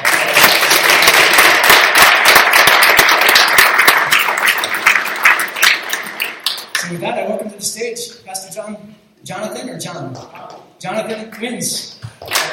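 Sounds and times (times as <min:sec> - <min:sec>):
audience clapping: 0:00.0 - 0:07.0, 0:10.2 - 0:12.5
speech: 0:06.9 - 0:12.4.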